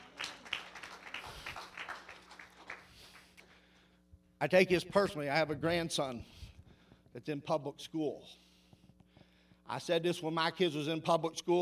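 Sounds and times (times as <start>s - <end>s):
audience clapping in worship: 0.0s - 3.5s
speech: 4.4s - 6.4s, 7.1s - 8.4s, 9.7s - 11.5s.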